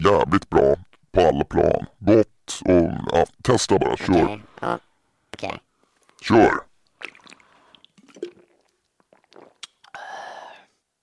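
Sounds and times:
speech: 0:00.0 - 0:02.8, 0:03.4 - 0:05.5, 0:06.3 - 0:06.6
person drinking Norrlands ljus non-alcoholic organic beer: 0:06.8 - 0:10.1
breathy rush after drinking: 0:10.0 - 0:10.8.

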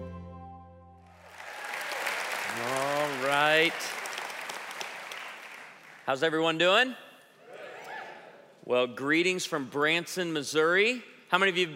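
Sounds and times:
audience applause welcoming a pastor and author to the stage: 0:01.2 - 0:06.1
speech: 0:02.6 - 0:04.0, 0:06.1 - 0:07.0, 0:08.7 - 0:11.7.

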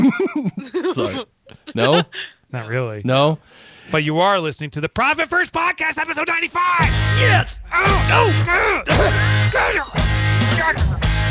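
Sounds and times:
laughter: 0:00.0 - 0:02.3, 0:08.8 - 0:09.5
speech: 0:00.1 - 0:11.2
person coughing fit: 0:08.9 - 0:09.4.

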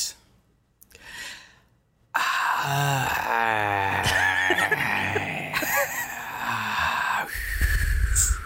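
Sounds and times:
man imitating a magical sleep-inducing breath: 0:00.9 - 0:02.6, 0:06.4 - 0:08.4
man's sustained wavering vocal sigh: 0:02.2 - 0:08.4.

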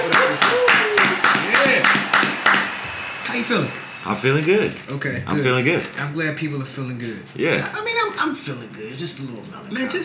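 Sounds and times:
hand clapping: 0:00.0 - 0:02.8
speech: 0:03.4 - 0:10.0.

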